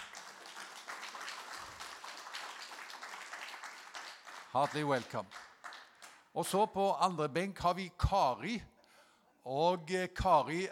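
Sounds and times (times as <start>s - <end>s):
audience applause: 0.0s - 6.1s
speech: 4.5s - 5.4s, 6.4s - 8.7s, 9.4s - 10.7s.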